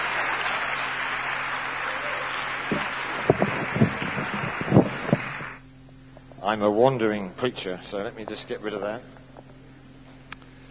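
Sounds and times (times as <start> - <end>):
audience applause welcoming a speaker: 0.0 - 5.6
speech: 6.4 - 9.2.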